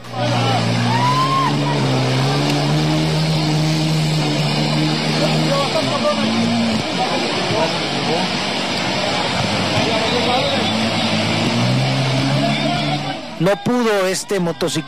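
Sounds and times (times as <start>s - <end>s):
rushing floodwater current: 0.0s - 14.8s
speech: 13.4s - 14.8s.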